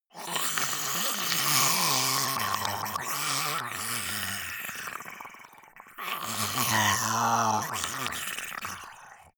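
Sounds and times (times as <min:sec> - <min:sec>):
zombie monster choking: 0:00.1 - 0:09.3.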